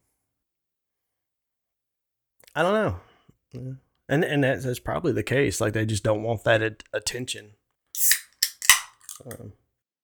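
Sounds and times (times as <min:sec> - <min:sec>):
speech: 0:02.6 - 0:08.2, 0:09.2 - 0:09.6
soda can opening with hiss: 0:08.0 - 0:09.4.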